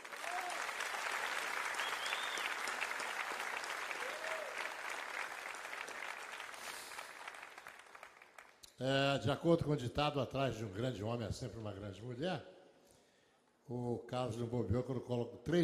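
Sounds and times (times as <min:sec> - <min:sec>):
sustained applause from a sizable audience: 0:00.0 - 0:08.6
faint whoops: 0:00.1 - 0:00.8, 0:01.7 - 0:02.6, 0:03.9 - 0:04.9
speech: 0:08.8 - 0:12.5, 0:13.7 - 0:15.6.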